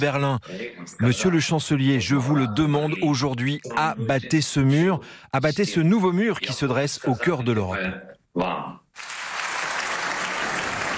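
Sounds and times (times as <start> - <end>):
speech: 0.0 - 9.1
applause from German parliament members for Zelensky: 9.0 - 10.9.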